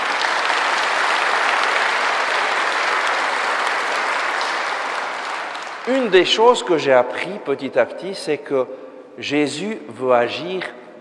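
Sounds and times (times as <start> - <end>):
audience applauding: 0.0 - 6.5
speech: 5.9 - 10.8.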